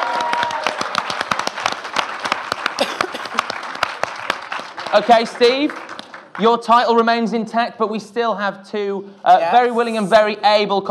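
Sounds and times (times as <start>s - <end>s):
audience applause: 0.0s - 6.6s
speech: 4.9s - 5.8s, 6.4s - 10.8s.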